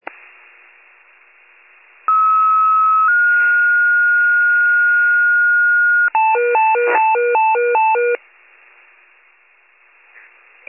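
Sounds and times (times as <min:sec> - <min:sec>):
fire pager alert: 0:02.1 - 0:08.2.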